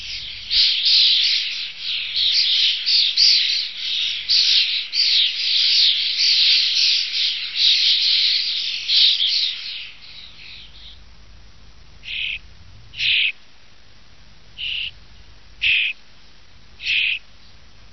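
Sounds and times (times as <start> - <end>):
common starling chatter: 0.0 - 11.0, 12.0 - 13.4, 14.6 - 16.0, 16.8 - 17.6.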